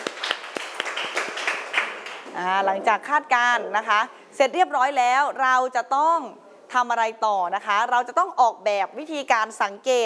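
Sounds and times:
classroom clapping: 0.0s - 2.5s
speech: 2.4s - 10.0s.

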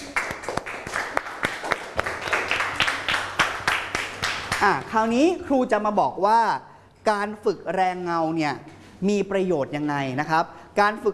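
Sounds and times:
applause: 0.0s - 4.8s
speech: 4.6s - 11.1s.

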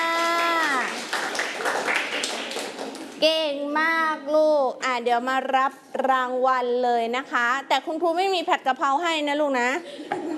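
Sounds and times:
children clapping for a classmate: 0.0s - 3.2s
speech: 3.2s - 10.3s.

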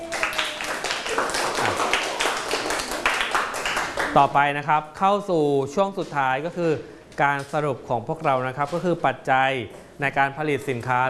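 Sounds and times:
group of students clapping: 0.0s - 4.2s
speech: 4.2s - 11.0s.

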